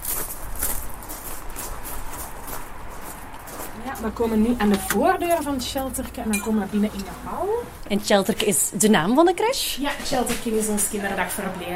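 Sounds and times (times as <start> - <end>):
footsteps walking over small pebbles: 0.0 - 4.2
speech: 4.0 - 11.7.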